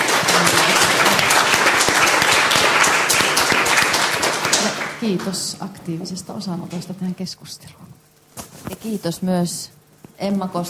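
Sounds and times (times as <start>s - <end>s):
audience applause: 0.0s - 5.0s
speech: 5.0s - 8.1s, 8.8s - 10.6s.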